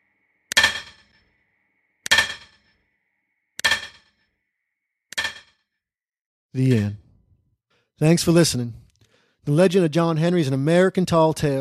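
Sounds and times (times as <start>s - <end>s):
great hammer pounding on cold stone: 0.5s - 1.2s, 2.0s - 2.7s, 3.6s - 4.2s, 5.1s - 5.6s
speech: 6.6s - 7.0s, 8.0s - 8.8s, 9.4s - 11.6s.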